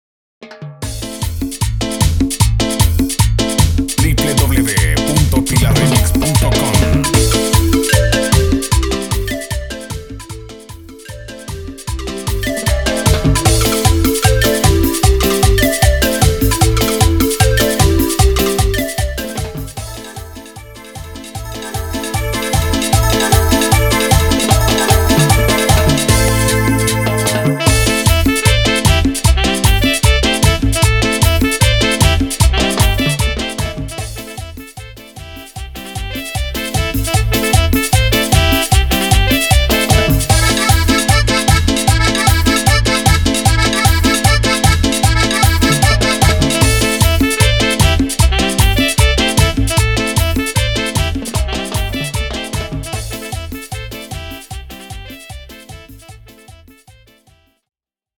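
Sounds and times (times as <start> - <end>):
instrumental music at 152 BPM: 0.4 - 57.5.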